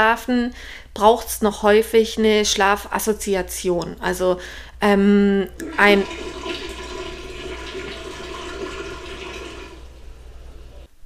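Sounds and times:
speech: 0.0s - 6.6s
dishwasher running: 5.6s - 10.9s.

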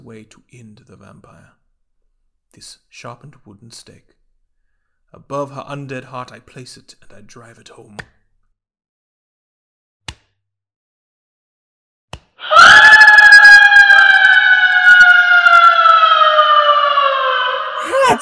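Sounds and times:
speech: 0.1s - 1.6s, 2.5s - 4.2s, 5.1s - 8.2s
woman screaming: 12.4s - 18.1s.

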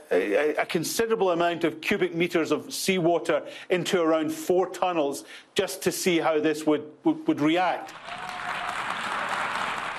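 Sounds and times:
speech: 0.1s - 8.6s
crowd applauding: 7.9s - 9.9s.

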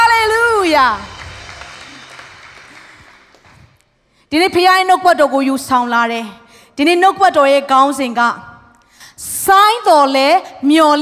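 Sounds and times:
church congregation clapping hands to honor God: 0.7s - 3.9s
speech: 0.8s - 1.1s, 4.3s - 8.5s, 9.2s - 11.0s.

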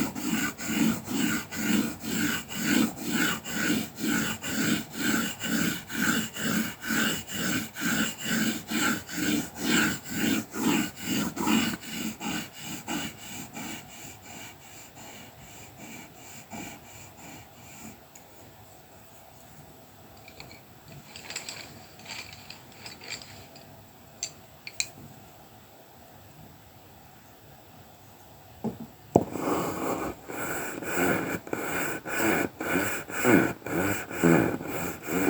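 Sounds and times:
colouring pencil strokes scratching: 0.0s - 18.0s, 29.2s - 35.2s.

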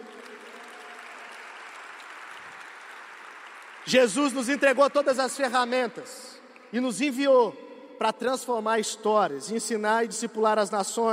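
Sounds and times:
audience applause: 0.0s - 5.1s
speech: 3.9s - 11.1s.

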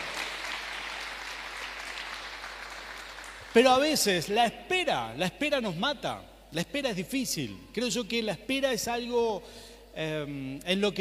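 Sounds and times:
audience applause: 0.0s - 3.6s
speech: 3.6s - 11.0s.

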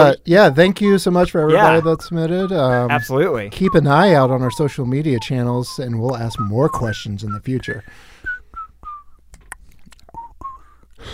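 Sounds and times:
speech: 0.0s - 8.1s
person whistling a bouncy tune: 1.5s - 9.2s, 10.1s - 11.1s.

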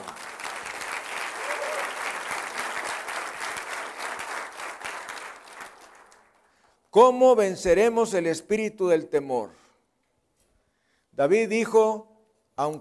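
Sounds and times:
audience applause: 0.0s - 6.5s
speech: 6.9s - 9.6s, 11.2s - 12.7s.

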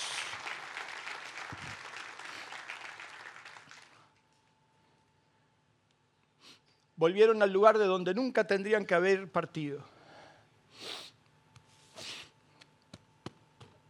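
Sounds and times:
audience applause: 0.0s - 4.0s
speech: 7.0s - 10.0s.

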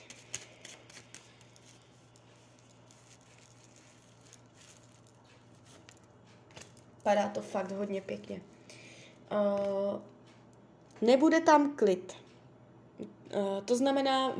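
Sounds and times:
deck of cards being shuffled: 0.0s - 8.4s
low steady hum: 0.0s - 14.3s
speech: 7.1s - 8.5s, 9.3s - 10.1s, 11.0s - 12.2s, 13.3s - 14.3s.

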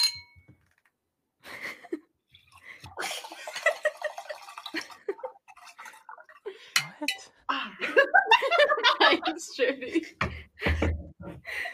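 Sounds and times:
water being poured into glass: 2.3s - 7.0s
laughter: 3.0s - 5.3s, 7.5s - 10.2s
speech: 9.3s - 10.4s.

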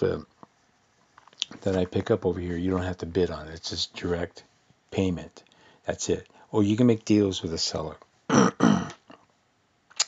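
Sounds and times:
speech: 0.0s - 0.4s, 1.6s - 8.7s
throat clearing: 8.3s - 9.2s.

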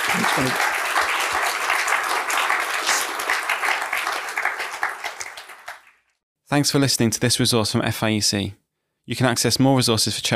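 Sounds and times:
round of applause: 0.0s - 6.2s
speech: 0.2s - 0.7s, 6.5s - 10.3s.

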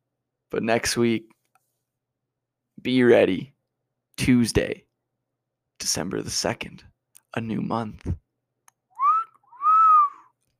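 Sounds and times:
speech: 0.5s - 1.4s, 2.8s - 3.5s, 4.2s - 4.8s, 5.8s - 8.2s
catcall wolf whistle: 9.0s - 10.3s.

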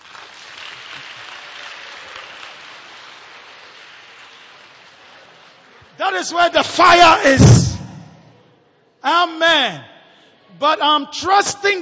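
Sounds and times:
audience clapping: 0.0s - 6.3s
speech: 6.0s - 7.7s, 9.1s - 9.9s, 10.6s - 11.8s.

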